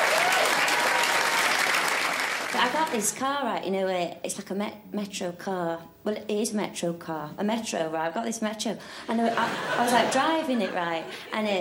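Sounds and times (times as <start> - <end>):
audience applause welcoming a comedian onto a stand-up stage: 0.0 - 3.0
speech: 2.6 - 11.5
laughter: 9.2 - 11.3.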